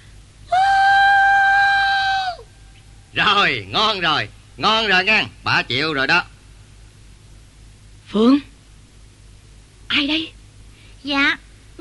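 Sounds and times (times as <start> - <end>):
person howling with joy: 0.5 - 2.5
speech: 3.4 - 6.3, 8.1 - 8.5, 9.9 - 10.4, 11.0 - 11.7.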